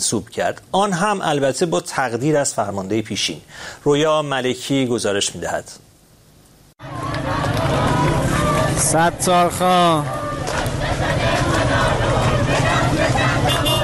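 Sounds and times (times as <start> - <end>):
speech: 0.0 - 5.9, 8.8 - 10.2
large crowd of protesters chanting: 6.8 - 13.8.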